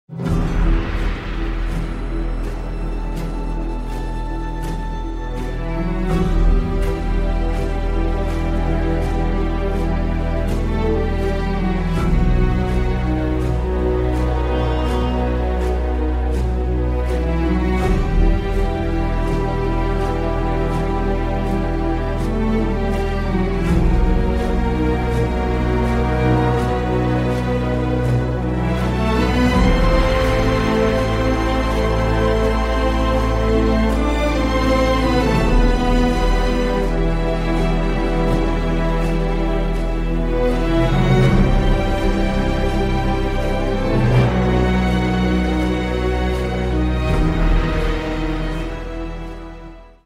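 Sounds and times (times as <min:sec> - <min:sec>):
theme music: 0:00.0 - 0:50.0.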